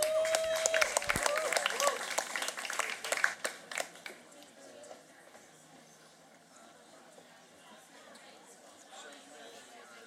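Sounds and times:
people whooping: 0:00.0 - 0:02.3
audience clapping at a comedy show: 0:00.0 - 0:04.2.

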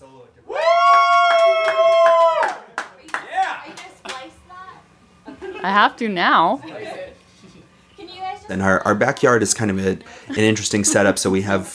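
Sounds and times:
small group cheering: 0:00.4 - 0:04.8
hands clapping: 0:00.9 - 0:04.3
laughter: 0:05.2 - 0:05.9, 0:06.5 - 0:07.2, 0:10.0 - 0:11.7
speech: 0:05.7 - 0:06.7, 0:08.5 - 0:11.7.

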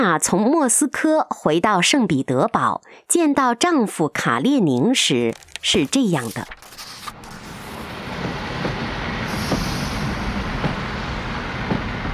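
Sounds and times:
speech: 0:00.0 - 0:06.8
train rumbling as it rolls in: 0:07.2 - 0:12.1
train wheels clacking: 0:08.1 - 0:12.1
air hiss: 0:09.2 - 0:11.0.

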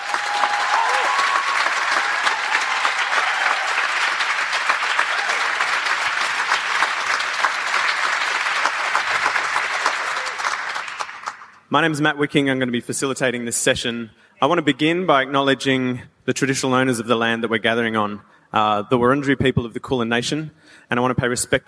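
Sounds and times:
audience applause: 0:00.0 - 0:11.6
speech: 0:11.7 - 0:21.6.

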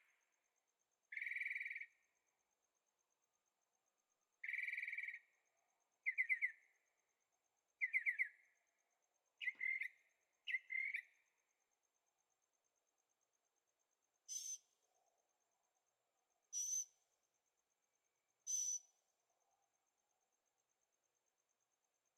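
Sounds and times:
bird buzzy song: 0:01.1 - 0:02.0, 0:04.4 - 0:05.4, 0:06.1 - 0:06.8, 0:07.8 - 0:08.6, 0:09.4 - 0:11.3, 0:14.3 - 0:14.7, 0:16.5 - 0:17.0, 0:18.5 - 0:19.0.

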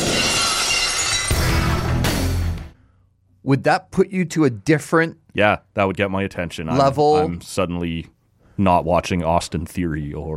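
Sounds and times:
glass shattering entrance sound effect: 0:00.0 - 0:01.9
speech: 0:03.5 - 0:10.3.

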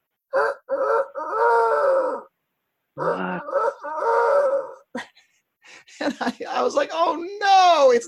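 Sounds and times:
rooster crowing: 0:00.3 - 0:02.3, 0:03.0 - 0:04.9
speech: 0:06.6 - 0:08.0.

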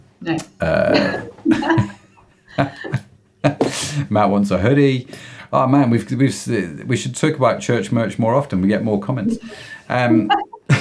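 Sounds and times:
speech: 0:00.2 - 0:01.2, 0:04.1 - 0:10.5
person coughing: 0:00.6 - 0:01.9
laughter: 0:00.7 - 0:03.8, 0:09.2 - 0:10.7.

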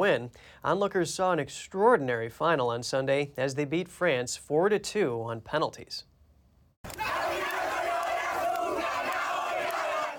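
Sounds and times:
speech: 0:00.0 - 0:06.1
soccer fans cheering and shouting: 0:06.9 - 0:10.1.

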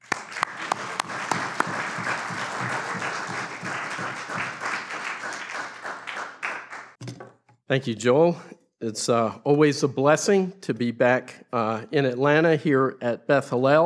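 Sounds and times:
Messianic congregation at Beth Hillel in Atlanta applauding to welcome a rabbi: 0:00.0 - 0:07.0
speech: 0:07.7 - 0:13.8.

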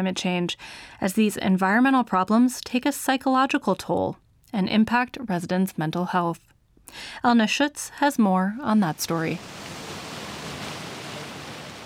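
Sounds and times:
speech: 0:00.0 - 0:09.8
Vaal River water flowing by the riverbank: 0:09.0 - 0:11.8.

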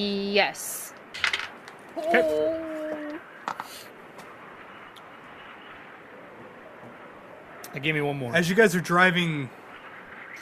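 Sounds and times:
speech: 0:00.0 - 0:00.8, 0:02.0 - 0:02.7, 0:03.5 - 0:04.0, 0:07.7 - 0:09.6
dice rolled during a tabletop roleplaying game: 0:01.2 - 0:01.6.

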